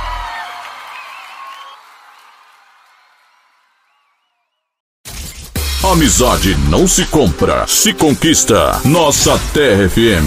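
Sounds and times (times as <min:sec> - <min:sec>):
crowd applause: 0:00.0 - 0:04.0
speech: 0:05.9 - 0:10.2.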